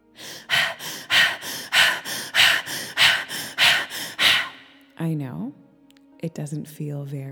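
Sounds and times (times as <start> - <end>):
rapid open-mouth breathwork with belly pumping: 0.0 - 4.9
speech: 5.0 - 5.6, 6.2 - 7.3.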